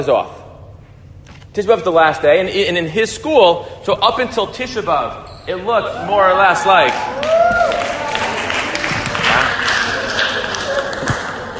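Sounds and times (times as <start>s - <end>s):
speech: 0.0s - 0.4s, 1.6s - 7.4s
audience clapping: 6.7s - 11.5s.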